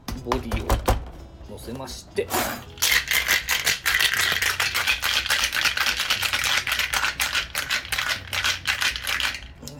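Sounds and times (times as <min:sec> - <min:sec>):
speech: 0:00.2 - 0:03.0
cocktail shaker being shaken: 0:02.8 - 0:09.6.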